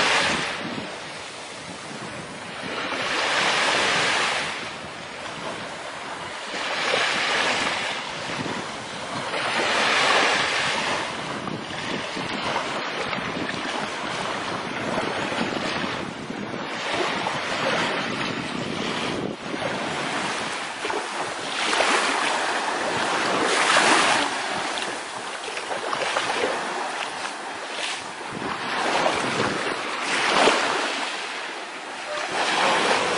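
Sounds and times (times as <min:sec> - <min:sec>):
white noise of the sea: 0:00.0 - 0:33.1.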